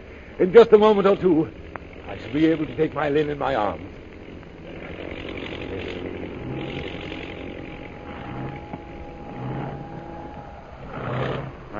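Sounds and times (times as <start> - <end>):
propeller plane engine droning while landing: 0.0 - 11.7
speech: 0.4 - 4.0.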